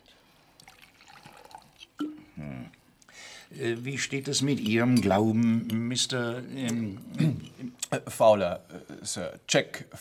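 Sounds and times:
water pouring into a glass: 0.4s - 2.4s
speech: 3.5s - 9.9s.

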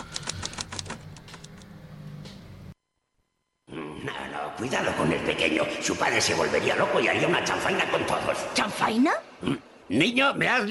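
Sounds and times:
typewriter typing: 0.0s - 1.6s
speech: 4.0s - 10.6s.

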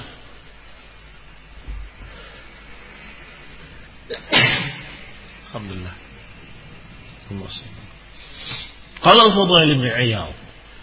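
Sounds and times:
low hum: 0.0s - 10.8s
sharp intake of breath: 2.0s - 3.2s, 8.1s - 8.9s
loud explosive sneeze: 4.1s - 5.1s
speech: 5.5s - 6.1s, 7.3s - 10.4s.

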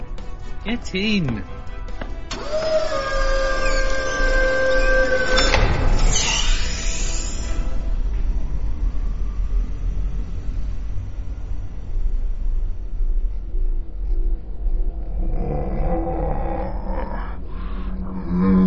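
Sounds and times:
low rumbling hum of sci-fi emergency elevator: 0.0s - 18.6s
speech: 0.6s - 1.7s
sci-fi emergency elevator electronic whine: 2.3s - 17.1s.

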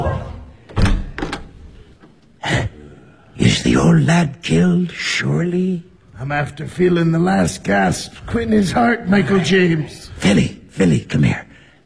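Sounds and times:
door opening and closing: 0.0s - 2.2s
speech: 3.7s - 11.5s.

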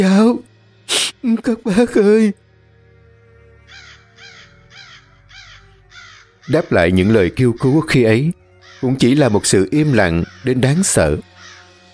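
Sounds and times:
speech: 0.0s - 2.4s, 6.5s - 11.3s
crows cawing: 3.3s - 11.9s.

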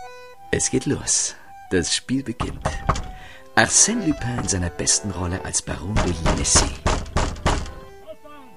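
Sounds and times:
speech: 0.5s - 6.9s
fists pounding on a wooden door: 2.4s - 3.3s, 4.2s - 4.7s, 5.9s - 7.9s.

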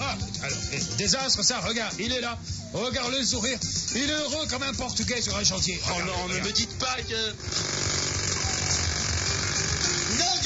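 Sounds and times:
speech: 1.0s - 8.1s
jackhammer drilling into stone: 7.4s - 10.4s.

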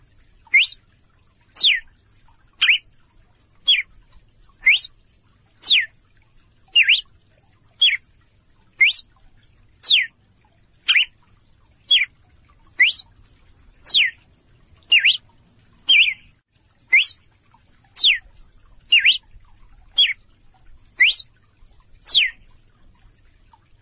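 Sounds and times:
female red-cowled cardinal calling in clear short whistles: 0.5s - 0.8s, 1.6s - 1.8s, 2.6s - 2.8s, 4.6s - 4.9s, 5.6s - 5.9s, 6.8s - 7.1s, 8.8s - 9.0s, 9.8s - 10.1s, 10.9s - 11.1s, 12.8s - 13.1s, 13.9s - 14.2s, 14.9s - 15.2s, 15.9s - 16.3s, 16.9s - 17.2s, 18.0s - 18.2s, 18.9s - 19.2s, 21.0s - 21.2s, 22.1s - 22.4s.

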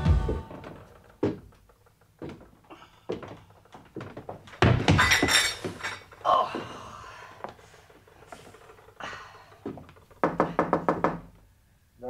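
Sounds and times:
thuds and knocks of someone stumbling on stairs: 0.2s - 1.6s, 2.2s - 5.8s, 9.6s - 11.4s.

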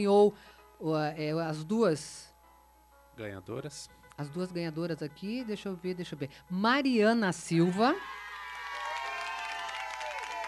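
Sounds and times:
speech: 0.0s - 2.3s, 3.2s - 8.3s
crowd cheering and applauding two prize-draw winners: 7.7s - 10.4s.

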